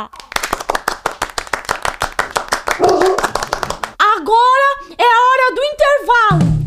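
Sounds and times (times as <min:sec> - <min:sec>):
speech: 0:00.0 - 0:00.2, 0:05.5 - 0:06.5
group clapping in a quick steady rhythm: 0:00.0 - 0:04.0
person cheering: 0:02.8 - 0:03.4.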